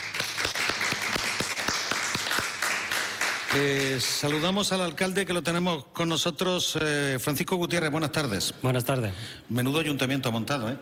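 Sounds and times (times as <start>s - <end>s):
audience applause: 0.0s - 4.6s
speech: 3.6s - 10.8s.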